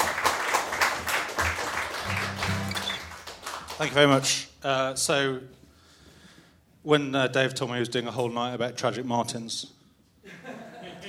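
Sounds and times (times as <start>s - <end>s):
audience applause: 0.0s - 4.0s
speech: 3.8s - 5.6s, 6.8s - 10.4s
laughter: 10.3s - 11.0s.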